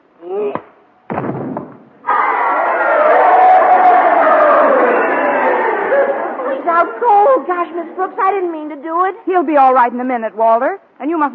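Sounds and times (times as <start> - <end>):
crowd cheering at a fight: 2.0 - 8.3
speech: 7.8 - 11.3.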